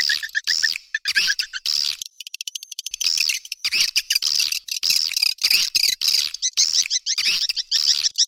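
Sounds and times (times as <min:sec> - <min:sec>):
swiftlet chirping: 0:00.0 - 0:02.0, 0:02.9 - 0:08.1.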